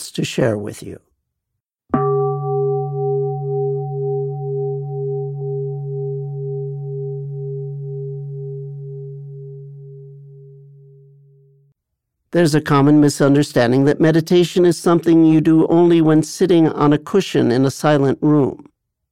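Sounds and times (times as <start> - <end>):
speech: 0.2 - 1.1, 12.4 - 18.7
meditation ending bell ringing: 1.9 - 11.8.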